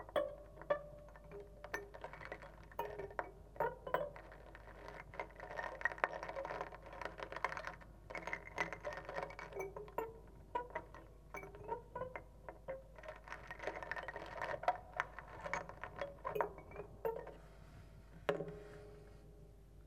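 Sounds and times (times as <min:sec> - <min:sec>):
harp: 0:00.0 - 0:19.6
comb: 0:01.3 - 0:10.1, 0:13.0 - 0:17.8.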